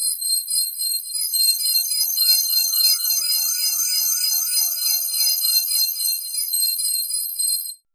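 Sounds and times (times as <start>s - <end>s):
high synth sequence: 2.0s - 6.6s.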